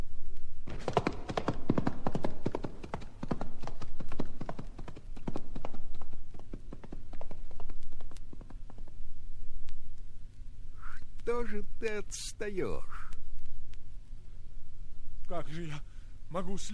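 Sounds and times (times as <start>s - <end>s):
horse hooves clip-clopping on a hard surface: 0.6s - 9.2s
speech: 11.3s - 13.0s, 15.3s - 16.7s.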